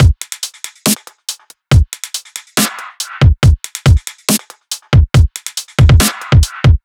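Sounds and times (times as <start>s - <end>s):
drum loops: 0.0s - 6.8s.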